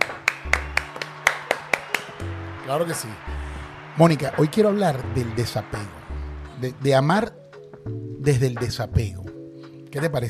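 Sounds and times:
hands clapping: 0.0s - 7.6s
speech: 2.7s - 3.4s, 4.0s - 6.0s, 6.6s - 9.2s, 9.9s - 10.2s.

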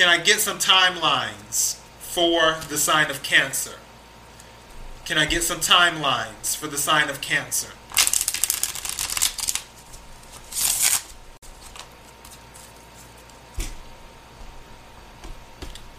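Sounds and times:
speech: 0.0s - 3.8s, 5.1s - 7.8s
tarot cards shuffled for a reading: 7.9s - 13.7s.

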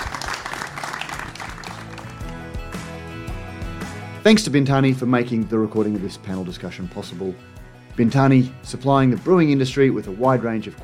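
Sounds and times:
audience applause: 0.0s - 2.5s
speech: 4.2s - 10.8s.

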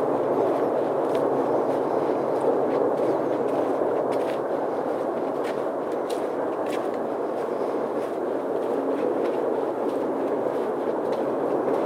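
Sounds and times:
faint ticks and crackles: 0.0s - 11.8s
steady rushing wash on a night hike on the Appleton Trail: 0.0s - 11.8s.

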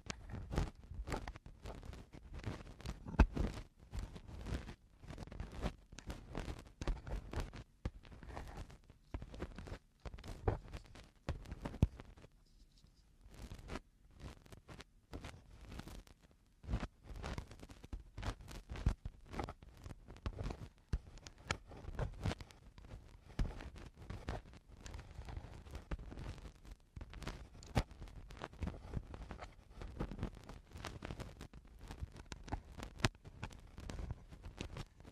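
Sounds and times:
eardrum cleaning crackling and scratching: 0.0s - 35.0s.

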